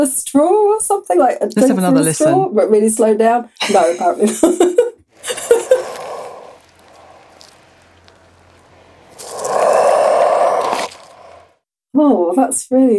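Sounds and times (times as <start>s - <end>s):
speech: 0.0s - 5.6s, 12.0s - 12.9s
laughter: 3.8s - 6.2s
animal breathing: 5.2s - 11.6s.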